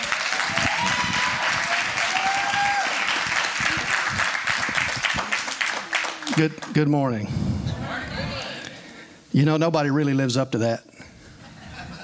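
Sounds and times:
cheers and whoops: 0.0 - 3.9
audience applauding: 0.0 - 6.9
speech: 6.4 - 7.8, 9.4 - 10.9.

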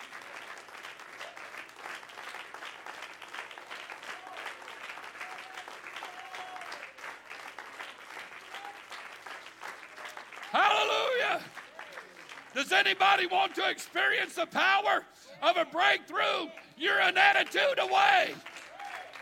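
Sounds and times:
audience clapping in worship: 0.0 - 19.2
faint cheers and voices: 5.2 - 6.9, 10.0 - 19.2
speech: 12.6 - 18.5.

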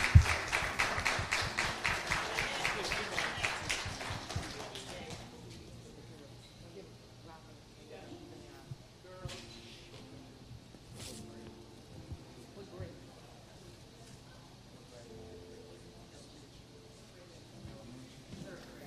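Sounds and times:
audience applauding for children: 0.0 - 5.3.

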